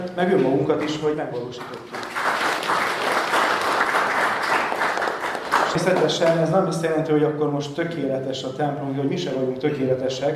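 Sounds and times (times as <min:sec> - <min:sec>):
speech: 0:00.1 - 0:02.3, 0:05.7 - 0:10.3
audience applause: 0:01.7 - 0:06.4.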